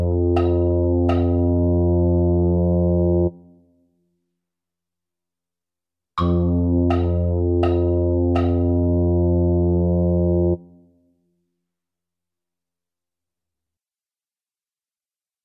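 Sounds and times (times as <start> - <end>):
tuba playing a Christmas classics medley: 0.0 - 3.5, 6.2 - 10.9.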